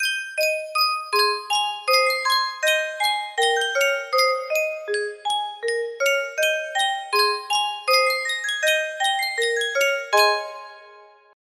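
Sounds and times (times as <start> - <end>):
music box melody: 0.0 - 11.2.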